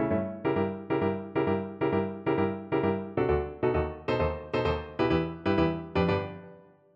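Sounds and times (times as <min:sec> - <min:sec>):
violin melody: 0:00.1 - 0:06.6.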